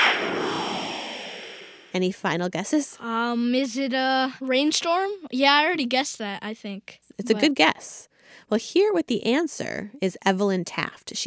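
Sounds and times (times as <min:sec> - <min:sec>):
breaking-news whoosh sting from TV news: 0:00.0 - 0:02.0
speech: 0:02.0 - 0:11.2.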